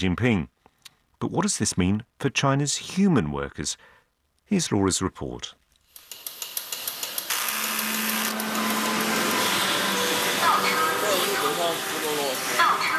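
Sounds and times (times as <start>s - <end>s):
speech: 0.0s - 0.5s, 1.2s - 5.6s
Chinese factory machinery rhythm: 6.0s - 12.9s.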